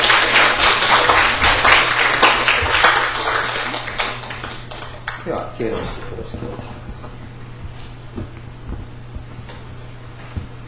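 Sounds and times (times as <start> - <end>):
audience applause: 0.0 - 5.3
speech: 5.6 - 7.1.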